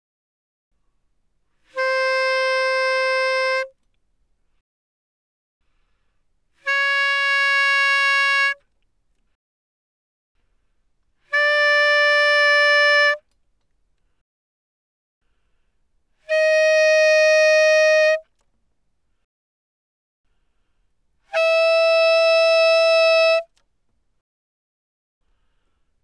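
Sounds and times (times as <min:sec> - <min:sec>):
bass clarinet playing fortissimo: 0:01.7 - 0:03.7, 0:06.6 - 0:08.6, 0:11.3 - 0:13.2, 0:16.3 - 0:18.2, 0:21.3 - 0:23.5.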